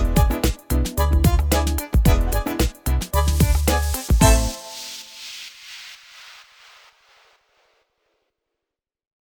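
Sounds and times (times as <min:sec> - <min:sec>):
tango nuevo music: 0:00.0 - 0:04.8.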